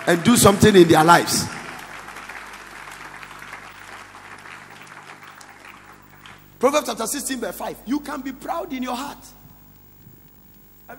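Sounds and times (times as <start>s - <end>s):
speech: 0.0s - 1.6s, 6.6s - 9.4s
few people clapping: 0.0s - 6.7s.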